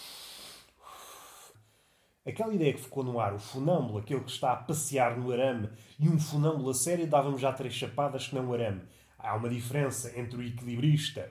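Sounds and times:
deep breath: 0.0s - 2.2s, 5.7s - 6.0s, 8.9s - 9.2s
speech: 2.2s - 11.3s.

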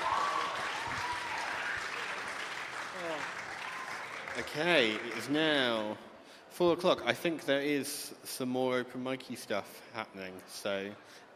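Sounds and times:
whoops and cheers: 0.0s - 2.2s, 3.0s - 4.1s
round of applause: 0.0s - 5.6s
speech: 4.4s - 11.3s.

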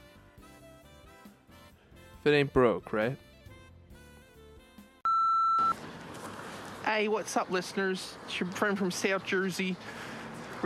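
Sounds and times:
speech: 2.2s - 3.3s, 7.0s - 10.1s
voicemail system electronic beep: 5.1s - 5.8s.

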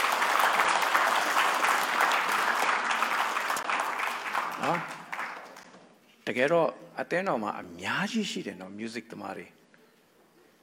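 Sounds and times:
audience clapping for the musicians at a gathering: 0.0s - 5.8s
speech: 4.7s - 4.9s, 6.3s - 9.6s.

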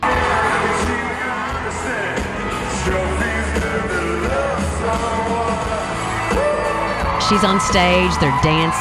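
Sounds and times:
concert crowd cheering: 0.0s - 8.7s
speech: 7.3s - 8.7s.

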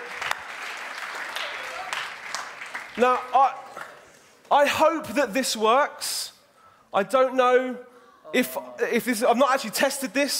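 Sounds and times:
audience applause: 0.0s - 4.1s
speech: 3.0s - 3.6s, 4.5s - 6.3s, 6.9s - 10.3s.

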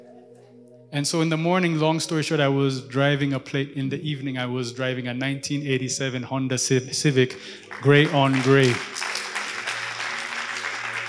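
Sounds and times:
speech: 0.9s - 9.0s
audience clapping: 7.3s - 11.0s.

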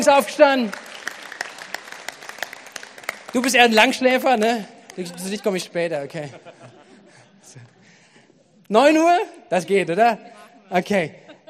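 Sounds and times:
speech: 0.0s - 0.8s, 3.3s - 6.7s, 8.7s - 11.4s
audience applause: 0.5s - 5.4s
laughter: 4.9s - 8.2s, 10.8s - 11.4s.

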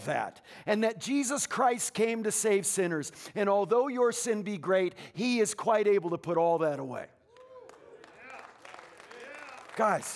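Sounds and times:
speech: 0.0s - 7.2s, 9.8s - 10.1s
audience applause: 7.3s - 10.1s.

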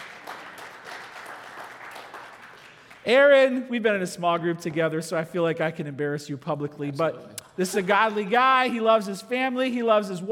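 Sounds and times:
audience applause: 0.0s - 3.0s
speech: 3.0s - 10.3s.

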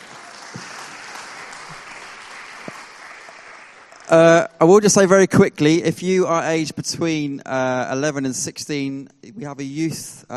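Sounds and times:
audience applause: 0.0s - 4.3s
speech: 4.1s - 10.3s.

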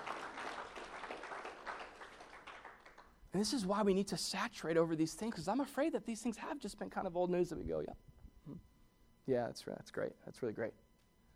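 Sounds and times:
audience applause: 0.0s - 3.1s
speech: 3.3s - 8.7s, 9.3s - 10.8s.

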